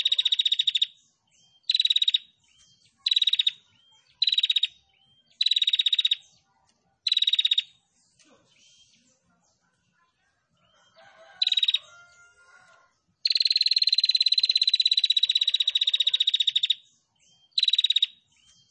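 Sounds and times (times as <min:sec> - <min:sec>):
female prinia singing rattling trills: 0:00.0 - 0:06.2, 0:07.0 - 0:07.7, 0:10.8 - 0:18.7.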